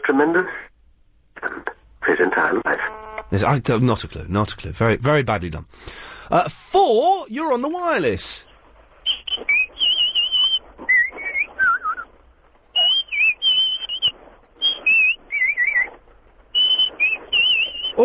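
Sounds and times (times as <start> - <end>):
speech: 0.1 - 0.7, 2.1 - 8.5
whistled theme tune imitating birds: 9.1 - 12.0, 12.8 - 15.9, 16.5 - 18.0.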